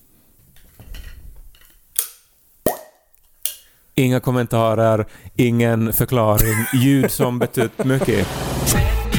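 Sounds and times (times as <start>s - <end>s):
plop tube toy popping: 2.0s - 3.0s
speech: 4.0s - 9.0s
laughter: 6.4s - 8.8s.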